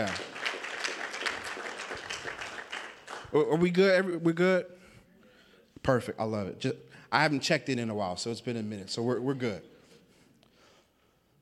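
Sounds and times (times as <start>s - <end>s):
speech: 0.0s - 0.3s, 3.3s - 4.8s, 5.8s - 9.7s
audience clapping: 0.0s - 3.6s.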